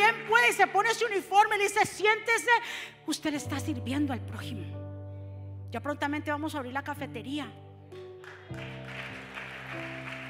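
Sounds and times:
speech: 0:00.5 - 0:04.8, 0:05.7 - 0:07.6
audience applause: 0:08.2 - 0:10.2.

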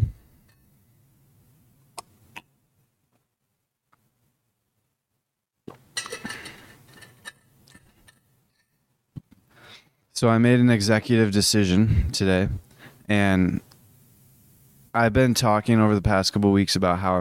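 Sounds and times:
glass clinking while getting water: 0:06.0 - 0:08.8
speech: 0:10.2 - 0:13.7, 0:14.9 - 0:17.1.

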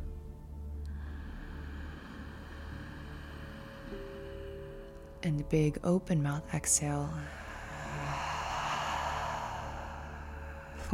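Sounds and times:
slow deep inhale through the nose: 0:00.9 - 0:05.2, 0:07.2 - 0:10.9
speech: 0:05.2 - 0:07.4.

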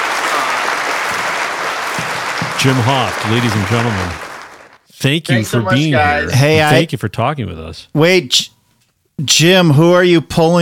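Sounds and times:
audience applause: 0:00.0 - 0:06.2
speech: 0:02.6 - 0:04.2, 0:05.0 - 0:08.6, 0:09.2 - 0:10.6.

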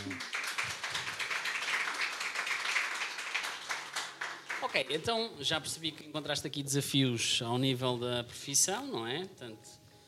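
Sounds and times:
round of applause: 0:00.0 - 0:05.2
speech: 0:04.6 - 0:09.8.

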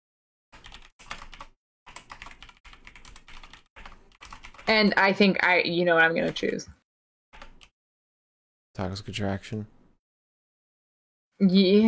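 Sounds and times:
keystrokes on a computer keyboard: 0:00.6 - 0:04.7, 0:07.4 - 0:07.8
speech: 0:04.7 - 0:06.8, 0:08.8 - 0:09.8, 0:11.4 - 0:11.8.

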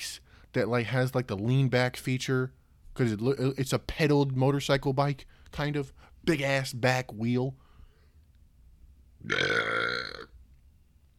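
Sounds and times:
speech: 0:00.5 - 0:07.6, 0:09.2 - 0:10.2
loud drawn-out burp: 0:09.2 - 0:10.4.

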